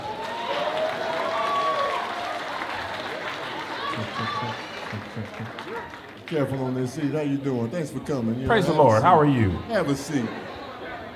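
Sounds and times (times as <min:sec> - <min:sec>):
audience clapping: 0:00.0 - 0:07.0
laughter: 0:03.4 - 0:05.9, 0:08.5 - 0:11.1
speech: 0:04.0 - 0:10.4.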